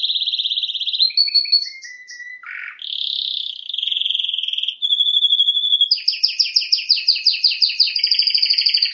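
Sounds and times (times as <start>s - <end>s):
canary singing: 0.0s - 8.9s.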